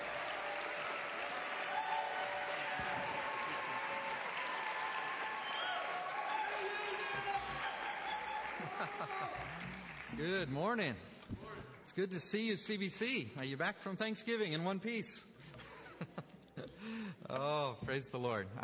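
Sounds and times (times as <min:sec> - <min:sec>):
audience applauding: 0:00.0 - 0:10.6
laughter: 0:06.5 - 0:09.9, 0:15.4 - 0:16.9
speech: 0:08.8 - 0:11.1, 0:11.9 - 0:15.3, 0:17.3 - 0:18.6.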